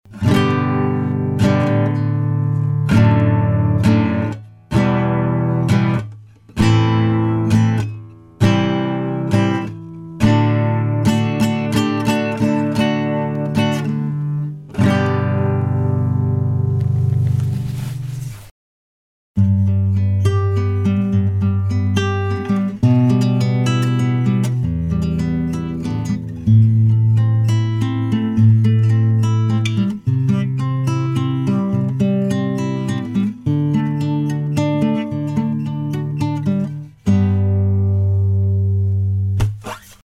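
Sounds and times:
acoustic guitar: 0.1s - 18.5s, 19.4s - 40.0s.

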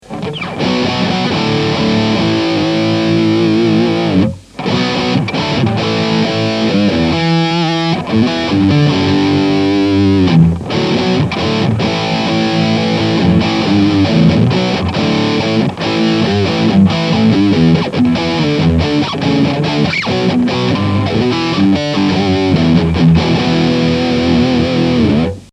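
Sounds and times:
Blackstar amplifier on max gain: 0.0s - 25.5s.

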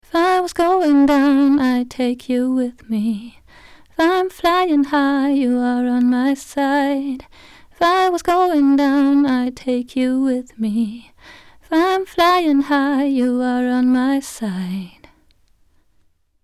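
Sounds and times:
vocals through Black Lion Audio B173 preamp at 80 dB gain: 0.0s - 15.6s.

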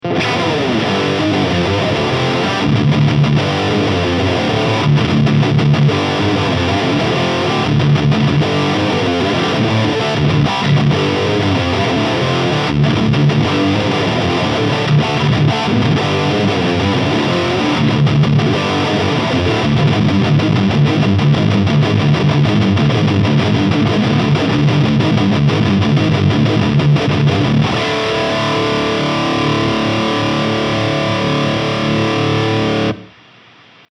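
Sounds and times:
Soldano SLO 30 high gain amplifier tone: 0.0s - 33.9s.

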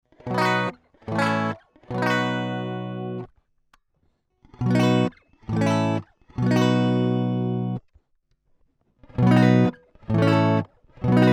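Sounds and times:
Jazzmaster guitar direct input with 22dB gain: 0.1s - 3.3s, 4.5s - 7.8s, 9.0s - 11.3s.

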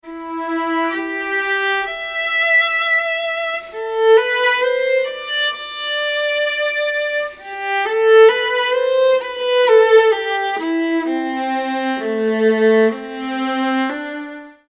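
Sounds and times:
violin: 0.0s - 14.7s.

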